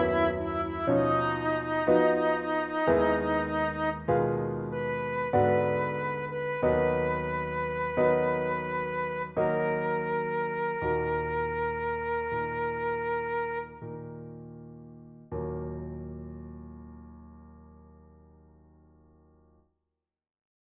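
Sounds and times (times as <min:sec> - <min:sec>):
flute: 0:00.0 - 0:14.2
piano: 0:00.0 - 0:19.6.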